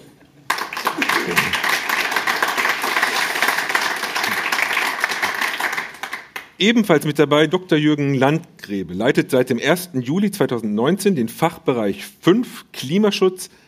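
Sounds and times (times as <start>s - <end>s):
audience applause: 0.5s - 6.5s
speech: 6.6s - 13.6s.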